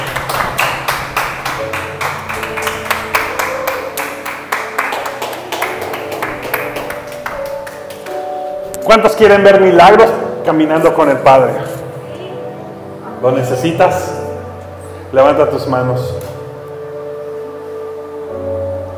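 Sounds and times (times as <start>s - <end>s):
audience applauding: 0.0s - 8.4s
speech: 8.9s - 11.8s, 13.2s - 14.1s, 15.1s - 16.3s.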